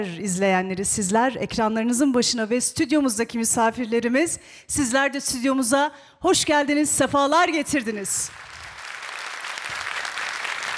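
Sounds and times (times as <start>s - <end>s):
speech: 0.0s - 8.5s
studio audience applause: 8.2s - 10.7s.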